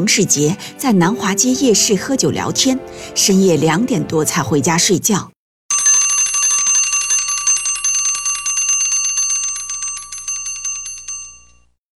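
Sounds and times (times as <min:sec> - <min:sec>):
speech: 0:00.0 - 0:05.4
alarm clock ringing: 0:05.7 - 0:11.7.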